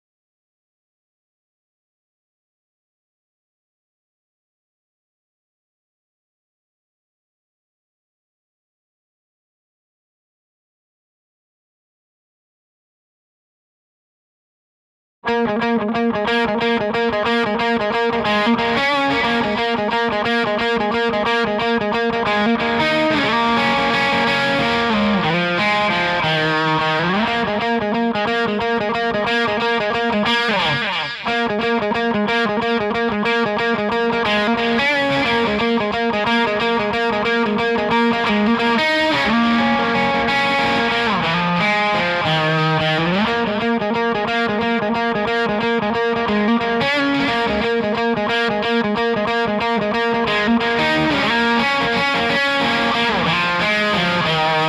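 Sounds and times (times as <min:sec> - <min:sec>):
bass guitar: 0:15.3 - 0:54.6.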